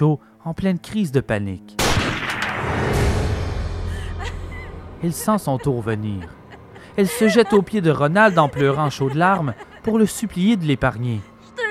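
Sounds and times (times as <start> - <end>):
speech: 0.0 - 1.8, 2.6 - 3.0, 5.0 - 6.4, 7.0 - 11.3
gunshot fired at point-blank range: 1.8 - 3.4
laughter: 3.9 - 11.3.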